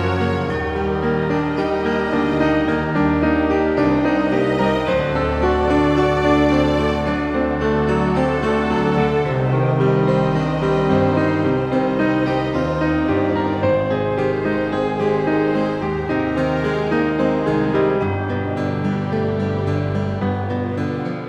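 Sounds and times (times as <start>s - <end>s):
forest game music: 0.0s - 21.0s.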